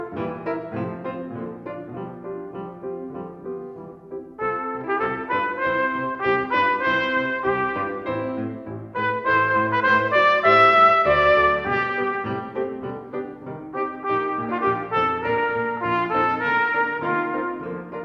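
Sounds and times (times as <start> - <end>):
trumpet serenade: 4.4 - 12.8, 13.7 - 18.0.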